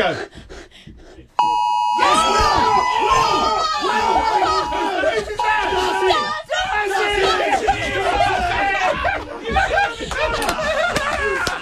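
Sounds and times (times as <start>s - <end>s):
speech: 0.0s - 0.5s
phone notification alert beep: 1.4s - 2.0s
laughter: 2.2s - 6.3s, 6.9s - 11.6s.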